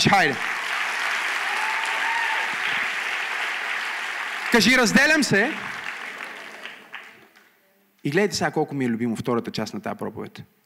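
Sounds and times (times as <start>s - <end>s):
speech: 0.0s - 0.5s, 4.5s - 5.7s, 8.0s - 10.6s
audience applause: 0.0s - 7.3s.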